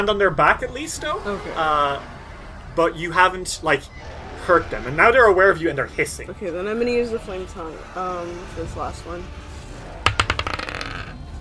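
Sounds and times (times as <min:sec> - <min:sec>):
speech: 0:00.0 - 0:02.1, 0:02.8 - 0:09.4
dice rolling on a hard tabletop: 0:10.0 - 0:11.2.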